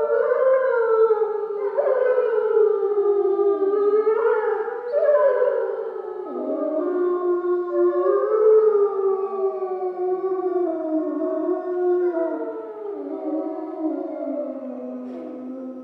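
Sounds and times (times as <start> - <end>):
grey wolves howling in chorus in Schorfheide: 0.0 - 15.8.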